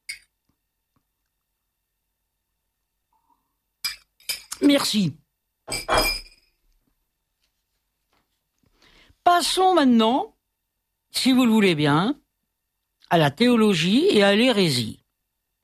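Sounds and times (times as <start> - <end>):
glass clinking while drinking water: 0.0 - 0.3, 3.8 - 4.6, 5.7 - 6.6
speech: 4.6 - 6.1, 9.4 - 10.4, 11.1 - 12.2, 13.1 - 15.0.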